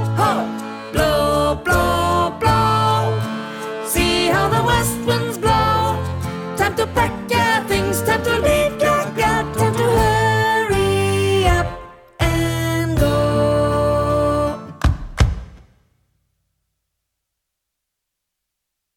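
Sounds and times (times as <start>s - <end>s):
soprano voice: 0.0s - 14.8s.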